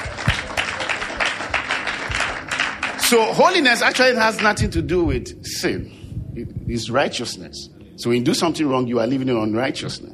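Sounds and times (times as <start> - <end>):
crowd clapping: 0.0 - 4.6
speech: 3.1 - 10.1.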